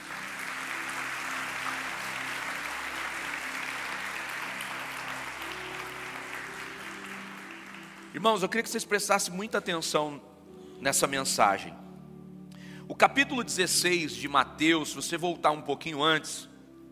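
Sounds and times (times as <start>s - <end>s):
audience applause: 0.0s - 8.2s
speech: 8.2s - 11.8s, 12.9s - 16.5s.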